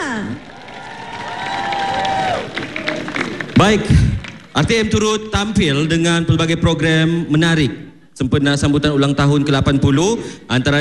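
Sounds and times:
audience applause: 0:00.1 - 0:05.0
speech: 0:03.6 - 0:10.7.

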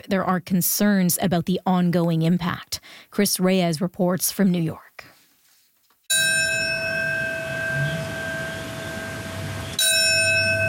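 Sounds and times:
speech: 0:00.0 - 0:05.1
memorial bell tolling: 0:06.1 - 0:10.6.

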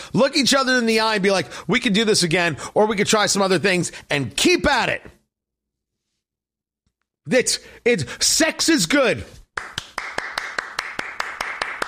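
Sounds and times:
speech: 0:00.1 - 0:05.2, 0:07.2 - 0:09.8
one person clapping hands alone: 0:09.5 - 0:11.8.

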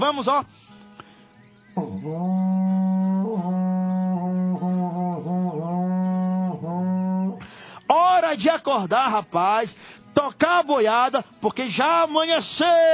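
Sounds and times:
speech: 0:00.0 - 0:00.7, 0:01.8 - 0:02.5, 0:08.4 - 0:12.9
berrante Brazilian cattle-herding horn blown: 0:01.8 - 0:07.6.

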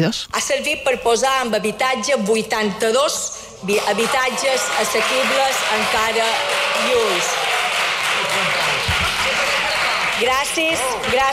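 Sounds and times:
speech: 0:00.0 - 0:07.5, 0:10.2 - 0:11.3
applause: 0:03.7 - 0:11.3
murmur of voices: 0:04.6 - 0:11.3.

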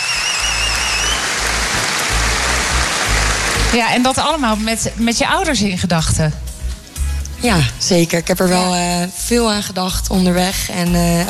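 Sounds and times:
applause: 0:00.0 - 0:04.2
speech: 0:03.7 - 0:06.4, 0:07.4 - 0:11.2.

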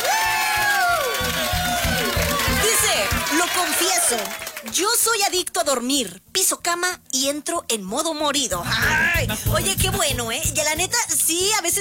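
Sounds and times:
audience applause and cheering: 0:00.0 - 0:04.8
speech: 0:03.5 - 0:11.7.

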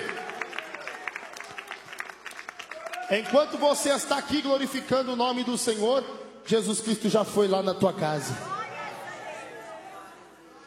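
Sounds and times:
audience applauding: 0:00.0 - 0:03.9
speech: 0:03.1 - 0:08.6.

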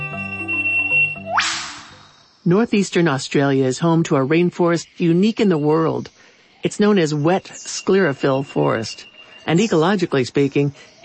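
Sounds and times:
low tonal background: 0:00.0 - 0:11.0
eastern whipbird whip-crack call: 0:01.3 - 0:02.0
speech: 0:02.4 - 0:10.9.

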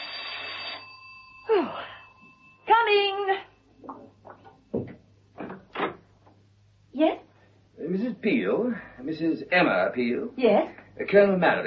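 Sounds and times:
doorbell ringing: 0:00.0 - 0:03.3
faint steady hum: 0:00.0 - 0:11.6
speech: 0:08.2 - 0:11.6.

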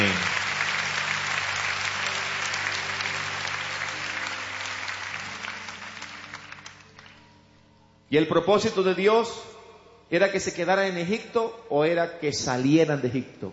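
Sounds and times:
audience applauding: 0:00.0 - 0:07.3
speech: 0:08.1 - 0:09.5, 0:10.1 - 0:13.5.

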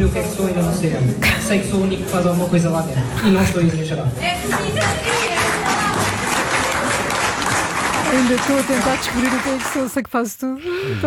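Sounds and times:
faint crowd murmur: 0:00.0 - 0:09.8
speech: 0:00.1 - 0:05.3, 0:08.1 - 0:11.0
audience applauding: 0:04.5 - 0:10.0.

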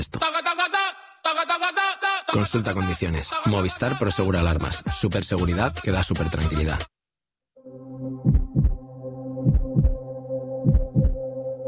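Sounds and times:
speech: 0:00.0 - 0:00.7, 0:01.3 - 0:07.0
sustained low electronic hum: 0:07.6 - 0:11.6
deep heartbeat pulse sound effect: 0:08.2 - 0:08.8, 0:09.4 - 0:10.0, 0:10.6 - 0:11.2.

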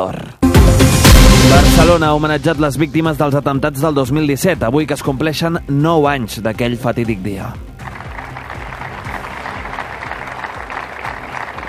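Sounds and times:
speech: 0:00.0 - 0:00.4, 0:01.6 - 0:07.7
applause at a Barcelona memorial tribute: 0:07.8 - 0:11.6.

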